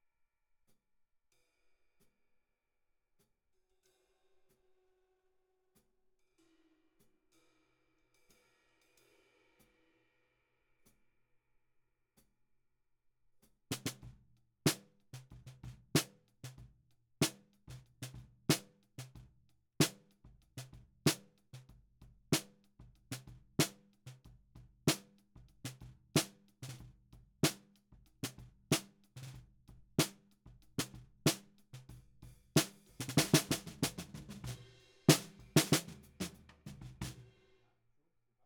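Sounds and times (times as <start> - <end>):
snare drum bottom at 94 bpm: 13.7 - 14.1, 14.7 - 16.6, 17.2 - 37.3.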